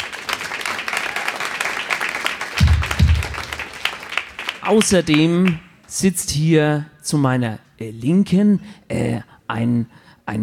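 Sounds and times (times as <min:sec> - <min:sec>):
audience applause: 0:00.0 - 0:05.6
speech: 0:04.7 - 0:10.4.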